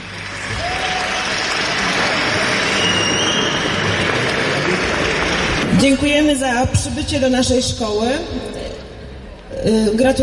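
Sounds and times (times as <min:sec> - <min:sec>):
crowd clapping: 0:00.0 - 0:06.2
faint whistles: 0:02.6 - 0:03.8
speech: 0:05.8 - 0:08.6, 0:09.6 - 0:10.2.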